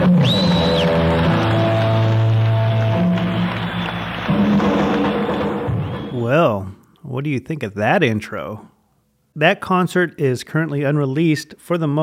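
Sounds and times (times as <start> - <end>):
concert audience applause: 0.0 - 6.2
speech: 7.2 - 8.7, 9.4 - 12.0.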